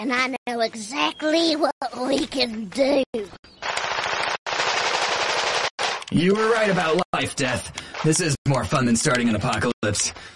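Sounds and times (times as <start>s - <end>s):
speech: 0.0s - 3.7s, 6.1s - 10.3s
rapid automatic gunfire from a first-person shooter video game: 3.6s - 6.0s.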